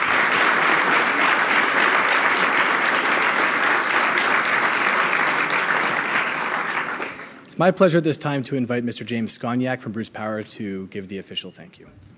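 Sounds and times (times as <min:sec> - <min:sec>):
audience applause: 0:00.0 - 0:07.4
speech: 0:07.6 - 0:12.1.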